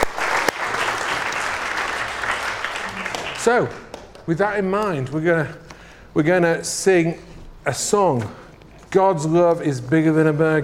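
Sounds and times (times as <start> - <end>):
audience applause: 0.0 - 4.2
speech: 3.4 - 10.6.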